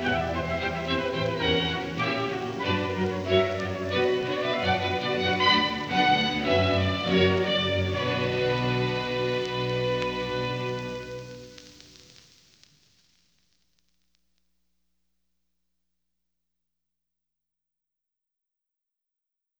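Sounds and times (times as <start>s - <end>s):
orchestral baroque suite: 0.0s - 11.7s.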